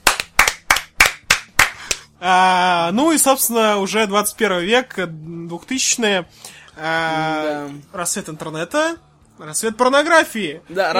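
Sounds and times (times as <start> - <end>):
person clapping hands: 0.0 - 2.1
speech: 2.2 - 10.9.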